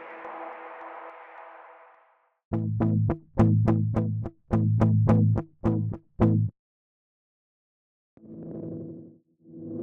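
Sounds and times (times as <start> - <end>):
guitar: 2.5 - 6.5.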